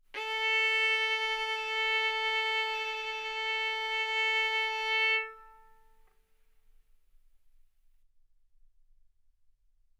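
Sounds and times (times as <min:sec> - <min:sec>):
violin bowed arco notes: 0:00.2 - 0:06.0.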